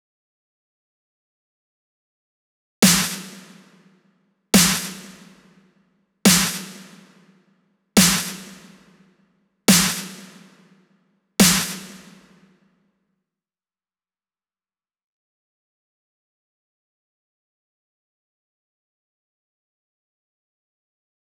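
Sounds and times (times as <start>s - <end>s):
140 BPM breakbeat with wet snare: 2.8s - 4.0s, 4.6s - 5.6s, 6.3s - 7.4s, 8.0s - 9.0s, 9.7s - 10.8s, 11.4s - 12.5s.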